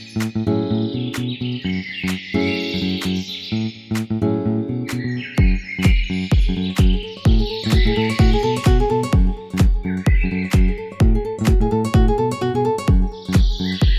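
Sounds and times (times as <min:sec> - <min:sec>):
house music mix: 0:00.2 - 0:03.3, 0:03.9 - 0:13.9.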